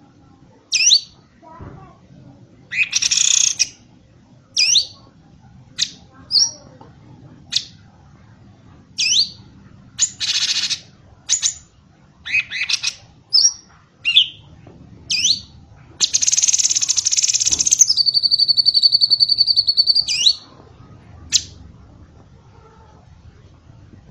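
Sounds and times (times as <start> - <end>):
bird song of sharp high chirps, slurred whistles and buzzy rattles: 0.7 - 1.2, 2.7 - 3.8, 4.6 - 5.0, 9.0 - 9.4, 10.0 - 14.5, 15.1 - 20.5.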